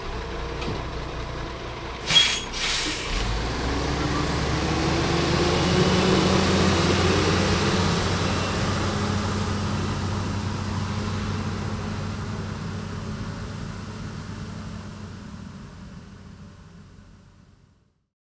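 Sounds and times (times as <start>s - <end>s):
garbage truck collecting garbage: 0.0s - 16.0s.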